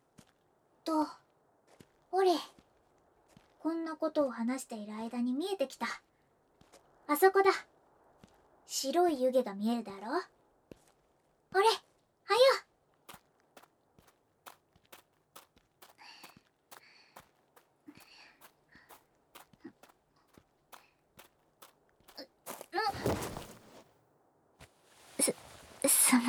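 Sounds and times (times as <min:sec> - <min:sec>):
speech: 0:00.9 - 0:01.2, 0:02.1 - 0:02.6, 0:03.6 - 0:06.1, 0:07.1 - 0:07.7, 0:08.7 - 0:10.4, 0:11.5 - 0:11.8
steady brisk footsteps: 0:12.9 - 0:23.8
quieter rustling: 0:17.9 - 0:23.9, 0:24.6 - 0:26.2
shuffling and scraping of someone stumbling: 0:22.1 - 0:23.8, 0:24.6 - 0:26.2
sharp thud: 0:22.9 - 0:23.8.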